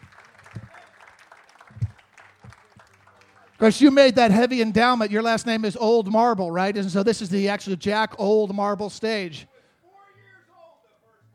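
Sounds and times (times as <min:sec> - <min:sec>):
audience applause: 0:00.0 - 0:04.6
speech: 0:03.6 - 0:09.5.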